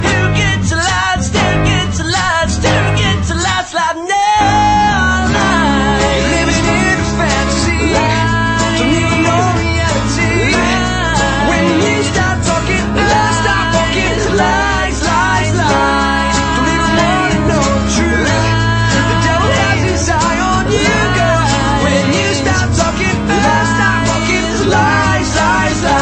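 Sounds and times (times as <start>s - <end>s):
acoustic music: 0.0s - 3.8s, 4.4s - 25.9s.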